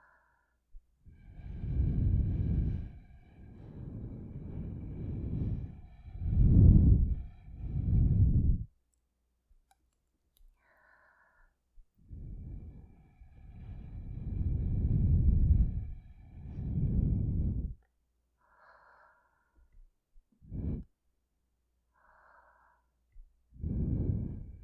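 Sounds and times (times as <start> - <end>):
blowing into ears through a straw: 1.3 - 8.7, 13.4 - 17.8, 23.6 - 24.6.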